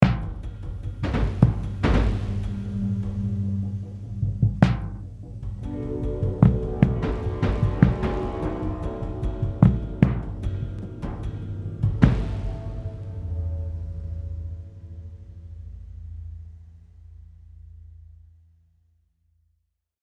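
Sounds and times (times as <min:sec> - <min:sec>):
drums: 0:00.0 - 0:14.5.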